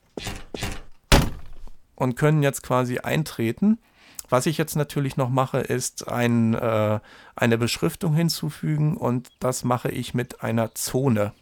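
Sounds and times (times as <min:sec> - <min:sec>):
door being worked and shut: 0:00.2 - 0:01.8
speech: 0:02.0 - 0:11.4.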